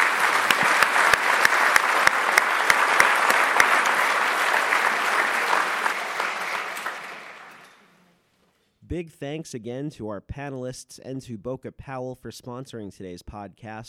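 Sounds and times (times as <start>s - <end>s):
applause: 0.0s - 7.9s
speech: 8.9s - 13.8s.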